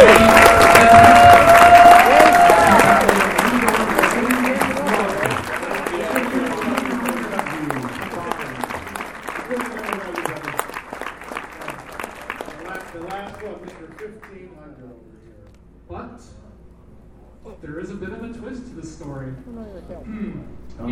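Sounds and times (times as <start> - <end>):
audience applause and cheering: 0.0 - 14.2.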